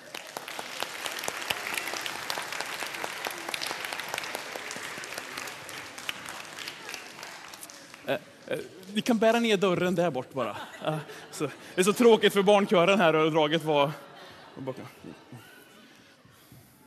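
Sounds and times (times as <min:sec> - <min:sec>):
audience applause: 0:00.0 - 0:09.8
speech: 0:08.1 - 0:15.2
laughter: 0:09.8 - 0:16.5.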